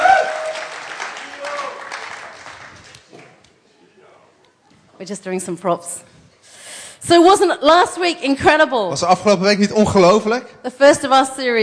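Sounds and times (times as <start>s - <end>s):
audience applause for the band: 0.0s - 3.4s
speech: 5.0s - 6.1s, 7.1s - 11.6s.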